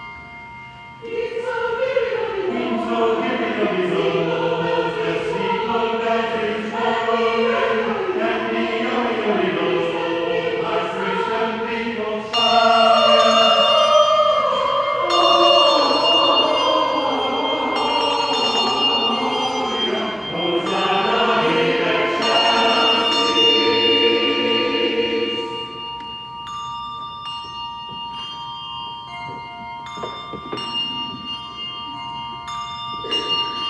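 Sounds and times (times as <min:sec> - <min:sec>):
choir singing: 0:01.0 - 0:26.1.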